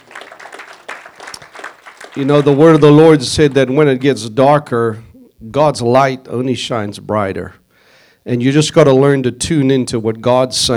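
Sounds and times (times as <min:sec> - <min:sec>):
audience applause: 0:00.0 - 0:04.2
speech: 0:02.2 - 0:07.6, 0:08.2 - 0:10.7.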